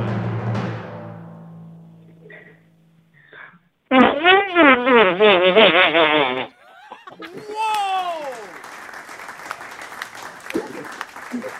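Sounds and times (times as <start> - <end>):
mouth-made fart noise: 3.9 - 6.6
laughter: 5.2 - 8.5
clapping: 7.0 - 11.5.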